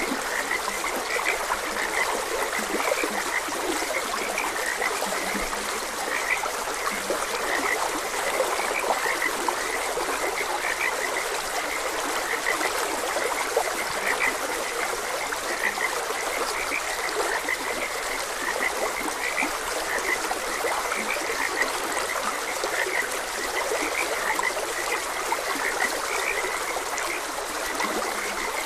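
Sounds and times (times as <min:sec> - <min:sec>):
frog chorus croaking: 0:00.0 - 0:28.6
stream's rushing water: 0:00.0 - 0:28.6.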